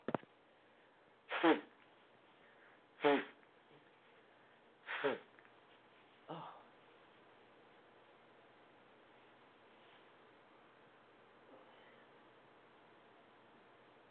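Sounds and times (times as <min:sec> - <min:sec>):
person blowing nose: 0:01.3 - 0:01.8, 0:03.0 - 0:03.4, 0:04.8 - 0:05.3.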